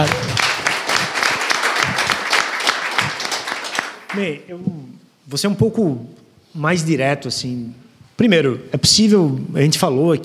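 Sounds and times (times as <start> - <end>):
audience applause: 0.0 - 4.3
speech: 4.2 - 10.2.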